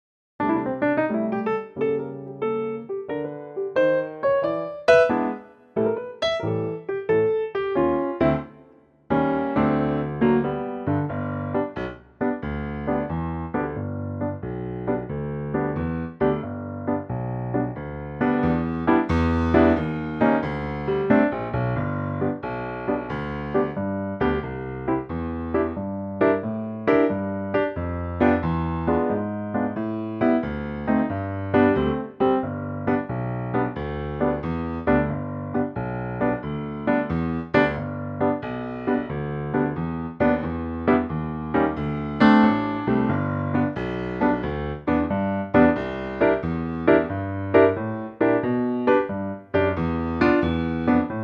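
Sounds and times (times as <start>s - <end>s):
piano G note: 0.4s - 51.2s.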